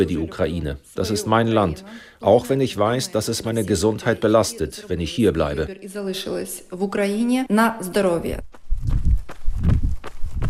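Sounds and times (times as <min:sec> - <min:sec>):
speech: 0:00.0 - 0:09.0
woman's footsteps jogging slowly on an asphalted forest path: 0:08.4 - 0:10.4.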